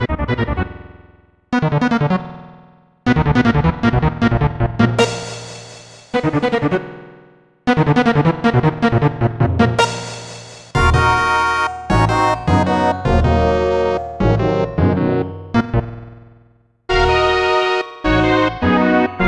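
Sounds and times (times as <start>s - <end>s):
music: 0.0s - 19.2s.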